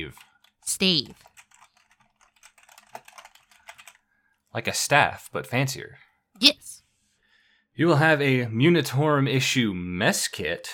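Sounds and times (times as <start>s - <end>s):
speech: 0.0s - 1.3s, 4.5s - 6.7s, 7.8s - 10.7s
typing on a computer keyboard: 0.0s - 4.0s.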